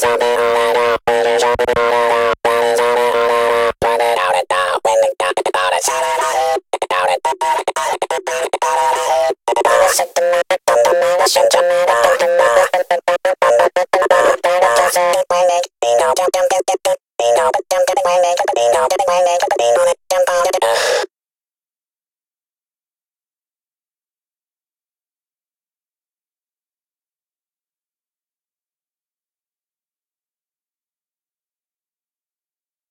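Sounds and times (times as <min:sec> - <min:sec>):
voices: 0:00.0 - 0:21.0.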